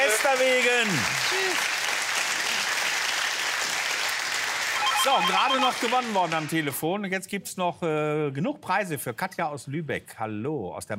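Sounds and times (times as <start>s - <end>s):
crowd applauding: 0.0s - 6.8s
speech: 0.3s - 1.8s, 5.0s - 10.9s.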